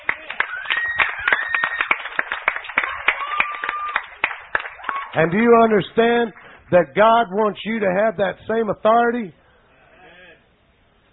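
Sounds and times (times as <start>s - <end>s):
audience clapping: 0.0s - 6.6s
speech: 5.2s - 9.4s.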